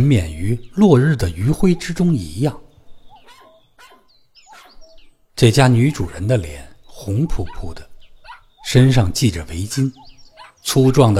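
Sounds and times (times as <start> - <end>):
speech: 0.0 - 2.6, 5.4 - 7.9, 8.6 - 11.1
small dog yipping and whining: 3.1 - 5.0, 8.2 - 8.6, 10.0 - 10.6.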